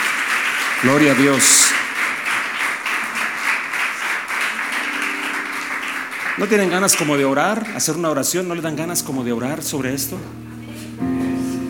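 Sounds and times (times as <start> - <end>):
audience applause: 0.0 - 8.7
speech: 0.8 - 1.9, 6.4 - 10.6.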